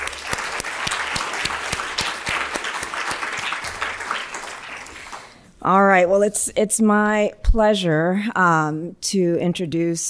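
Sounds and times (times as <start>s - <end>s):
audience applause: 0.0s - 5.4s
speech: 5.6s - 10.0s.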